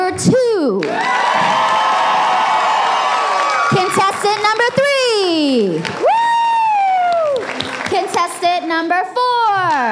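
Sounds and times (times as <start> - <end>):
speech: 0.2 - 1.1, 8.6 - 9.9
audience cheering: 0.8 - 8.2, 9.6 - 9.9.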